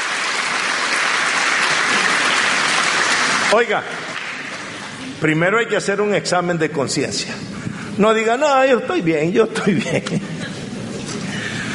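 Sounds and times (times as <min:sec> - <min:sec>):
audience applause: 0:00.0 - 0:05.1
speech: 0:03.5 - 0:04.0, 0:05.1 - 0:10.3
laughter: 0:09.5 - 0:11.0.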